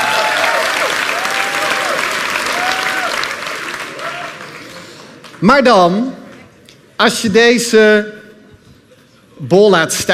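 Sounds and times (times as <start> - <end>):
applause: 0.0 - 5.4
speech: 5.4 - 6.2, 7.0 - 8.2, 9.4 - 10.1.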